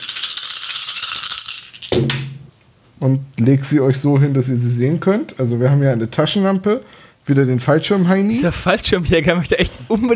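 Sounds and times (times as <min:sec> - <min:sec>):
dice clattering and landing: 0:00.0 - 0:02.3
speech: 0:01.9 - 0:02.2, 0:03.0 - 0:10.1.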